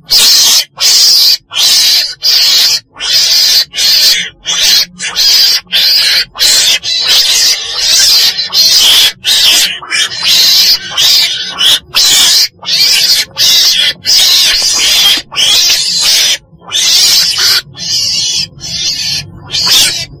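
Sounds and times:
weasel screeching: 0:00.0 - 0:20.1.

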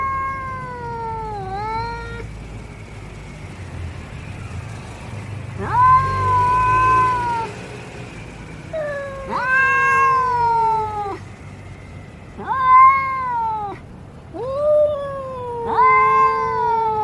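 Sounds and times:
domestic cat meowing: 0:00.0 - 0:02.3, 0:05.6 - 0:07.6, 0:08.7 - 0:11.2, 0:12.4 - 0:17.0.

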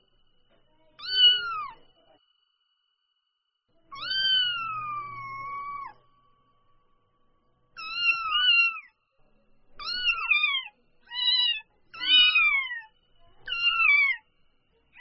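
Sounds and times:
domestic cat kitten mewing: 0:01.0 - 0:01.8, 0:03.9 - 0:06.0, 0:07.8 - 0:08.9, 0:09.8 - 0:14.2.

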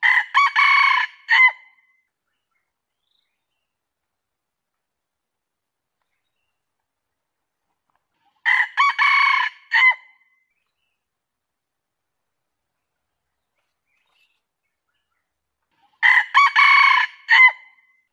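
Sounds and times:
junglefowl crowing: 0:00.0 - 0:01.6, 0:08.4 - 0:10.1, 0:16.0 - 0:17.7.

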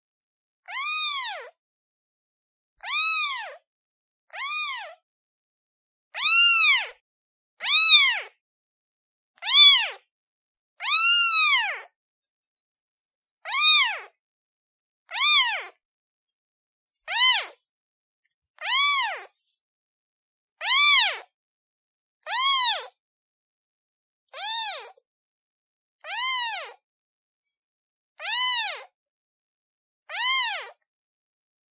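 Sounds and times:
kitten meowing: 0:00.7 - 0:01.5, 0:02.8 - 0:03.6, 0:04.3 - 0:05.0, 0:06.2 - 0:07.0, 0:07.6 - 0:08.4, 0:09.4 - 0:10.0, 0:10.8 - 0:11.9, 0:13.4 - 0:14.2, 0:15.1 - 0:15.8, 0:17.1 - 0:17.6, 0:18.6 - 0:19.3, 0:20.6 - 0:21.3, 0:22.3 - 0:22.9, 0:24.4 - 0:25.0, 0:26.0 - 0:26.8, 0:28.2 - 0:28.9, 0:30.1 - 0:30.8.

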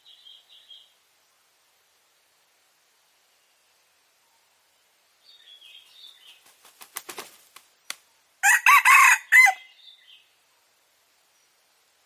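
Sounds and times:
red junglefowl crowing: 0:08.4 - 0:09.7.

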